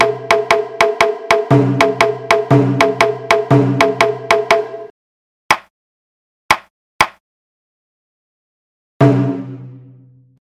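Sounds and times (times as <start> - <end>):
shime drum playing at 120 bpm: 0.0 - 4.9, 9.0 - 10.1.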